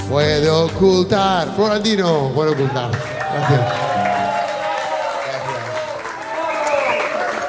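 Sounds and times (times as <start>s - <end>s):
speech: 0.1s - 3.9s
audience applause: 2.0s - 7.4s.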